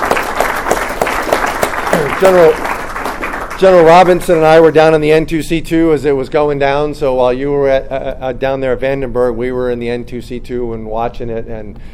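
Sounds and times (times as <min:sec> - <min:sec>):
audience applause: 0:00.0 - 0:04.2
speech: 0:02.2 - 0:02.7, 0:03.6 - 0:11.9.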